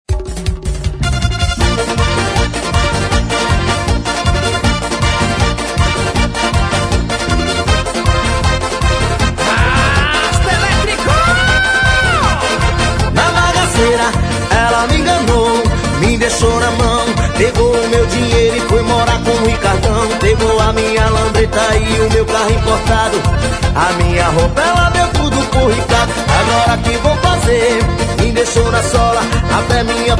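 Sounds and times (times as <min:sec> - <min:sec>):
forró music: 0:00.1 - 0:30.1.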